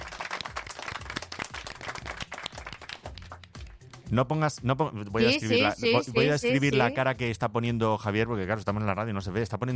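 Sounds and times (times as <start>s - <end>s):
audience applause: 0.0s - 3.5s
speech: 4.1s - 9.7s.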